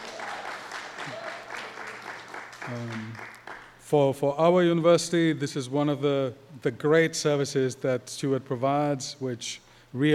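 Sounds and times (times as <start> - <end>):
applause: 0.0 - 3.8
speech: 2.7 - 3.3, 3.9 - 10.1.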